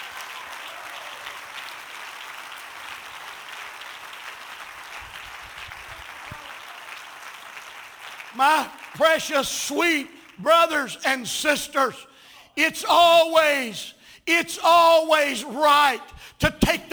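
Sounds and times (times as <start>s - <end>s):
audience clapping hands: 0.0s - 12.0s
speech: 8.4s - 16.9s.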